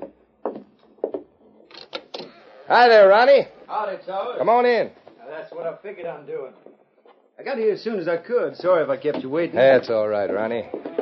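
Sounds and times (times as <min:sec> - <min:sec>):
door opening: 0:01.4 - 0:02.9
speech: 0:02.7 - 0:06.7, 0:07.4 - 0:10.8.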